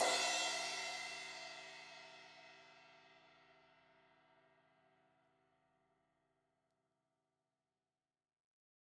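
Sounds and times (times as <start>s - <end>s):
16-inch crash cymbal hit on the edge: 0.0s - 1.8s.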